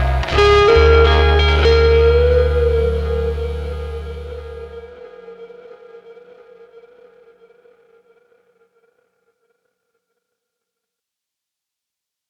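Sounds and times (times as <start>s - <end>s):
blocking distortion: 0.0s - 5.4s.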